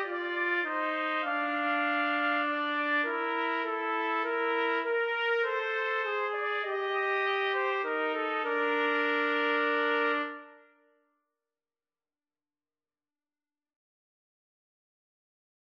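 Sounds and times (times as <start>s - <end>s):
trumpet trio playing a nocturne karaoke backing: 0.0s - 10.6s.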